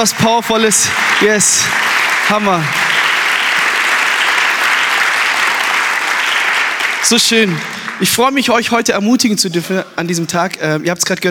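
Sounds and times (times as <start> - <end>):
speech: 0.0 - 3.2, 7.0 - 11.2
audience applause: 0.0 - 8.7.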